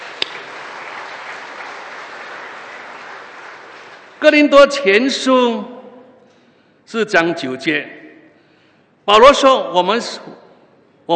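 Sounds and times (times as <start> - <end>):
audience applause for elders: 0.0 - 4.3
speech: 4.2 - 5.7, 6.9 - 8.0, 9.1 - 10.4.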